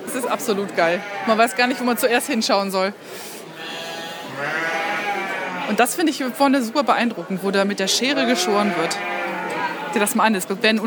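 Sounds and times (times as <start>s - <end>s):
speech: 0.2s - 3.4s, 4.4s - 4.7s, 5.7s - 9.2s, 10.0s - 10.8s
sheep bleating: 0.6s - 2.4s, 3.6s - 5.8s, 8.1s - 10.1s.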